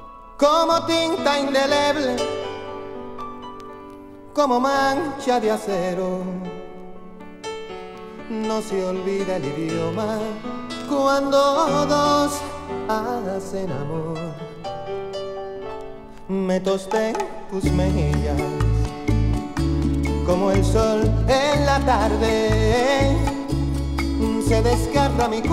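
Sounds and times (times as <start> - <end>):
Puerto Rican, Colombian and Latin American folkloric music: 0.0 - 25.5.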